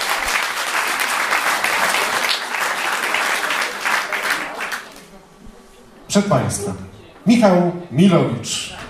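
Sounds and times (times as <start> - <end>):
audience applause: 0.0 - 5.1
speech: 6.1 - 8.8.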